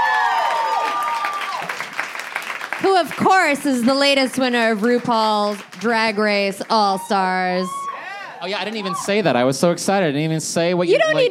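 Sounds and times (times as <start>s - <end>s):
audience applause: 0.0s - 7.8s, 8.4s - 9.3s
speech: 2.9s - 7.8s, 8.4s - 11.2s.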